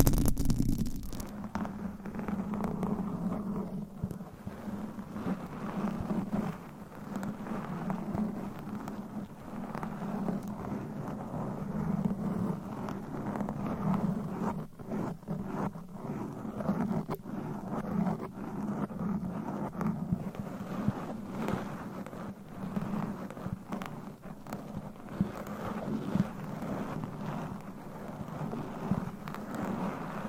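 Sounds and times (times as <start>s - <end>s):
low rumbling band: 0.0s - 1.3s
rough scratching on a microphone: 0.0s - 30.2s.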